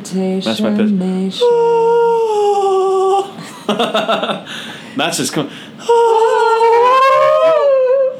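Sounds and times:
speech: 0.1s - 2.9s, 3.7s - 6.2s
laughter: 3.3s - 4.8s
dog howling: 6.1s - 7.9s
dog whimpering: 6.2s - 7.8s.

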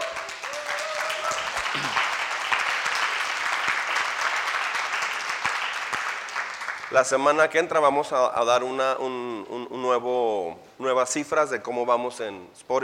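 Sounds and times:
audience applause: 0.0s - 6.9s
speech: 6.9s - 12.8s.

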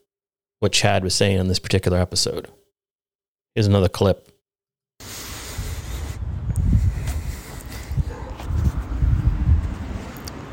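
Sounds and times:
speech: 0.6s - 2.6s, 3.6s - 4.3s
heavy breathing into microphone: 5.0s - 8.9s.

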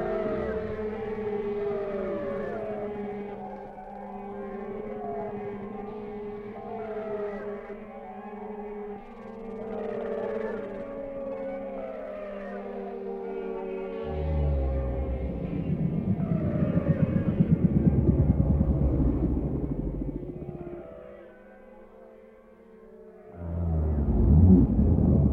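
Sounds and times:
whale song: 0.0s - 21.4s, 23.2s - 25.3s
low rumbling: 14.0s - 21.0s, 23.4s - 25.3s.

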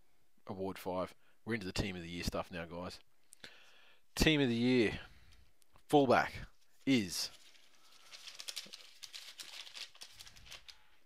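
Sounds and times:
speech: 0.5s - 3.1s, 4.2s - 5.1s, 5.9s - 7.4s
paper being opened: 6.6s - 11.0s.

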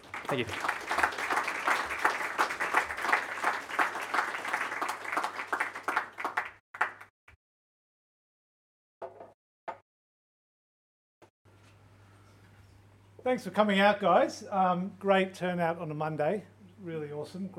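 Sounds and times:
audience applause: 0.0s - 7.1s
speech: 0.3s - 0.8s, 13.3s - 17.5s.

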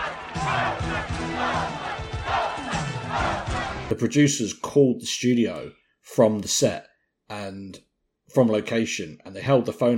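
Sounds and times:
crowd chanting: 0.0s - 3.9s
speech: 3.9s - 9.9s.

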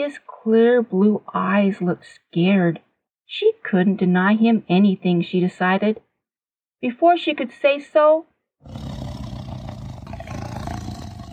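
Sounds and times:
speech: 0.0s - 6.1s, 6.8s - 8.9s
great white tiger roaring: 8.6s - 11.3s.

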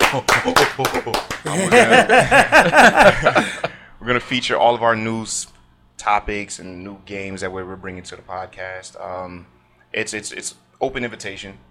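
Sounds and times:
clapping: 0.0s - 1.6s
laughter: 0.0s - 3.8s
speech: 0.1s - 11.6s.

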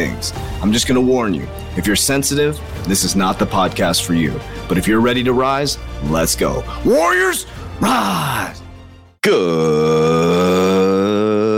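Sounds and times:
speech: 0.1s - 8.6s, 9.2s - 10.3s
burp: 9.2s - 11.5s.

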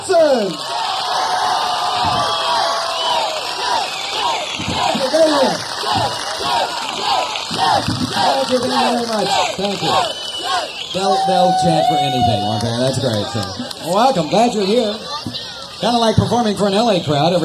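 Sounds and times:
audience applause: 0.0s - 11.2s, 12.1s - 14.0s
crowd cheering and whooping: 0.0s - 17.4s
speech: 0.1s - 0.8s, 5.3s - 17.4s.

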